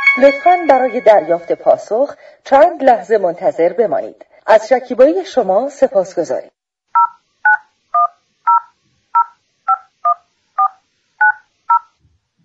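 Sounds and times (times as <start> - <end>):
speech: 0.2 - 6.5
touch-tone telephone dialing beeps: 7.0 - 11.9.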